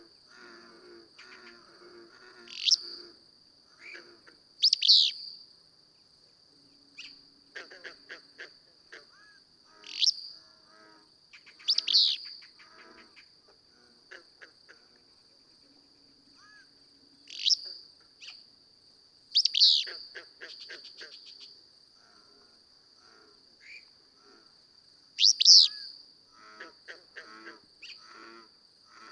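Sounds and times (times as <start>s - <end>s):
Willow Flycatcher calling: 2.4s - 3.1s, 3.8s - 5.4s, 9.1s - 10.4s, 11.3s - 12.6s, 16.4s - 18.4s, 19.3s - 21.4s, 25.2s - 26.0s.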